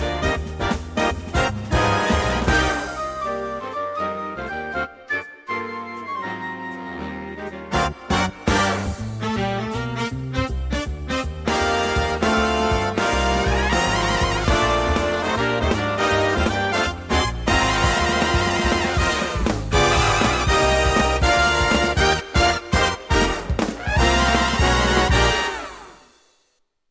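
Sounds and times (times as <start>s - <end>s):
big band playing: 0.0s - 26.3s.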